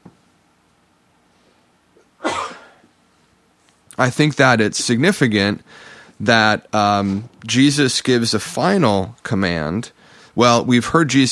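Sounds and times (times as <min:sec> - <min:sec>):
sneeze: 0:02.0 - 0:02.8
speech: 0:04.0 - 0:11.3.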